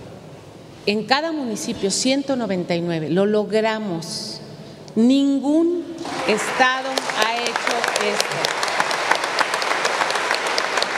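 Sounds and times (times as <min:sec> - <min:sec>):
speech: 0:00.8 - 0:04.4, 0:05.0 - 0:07.3, 0:08.0 - 0:08.4
audience applause: 0:06.0 - 0:10.9.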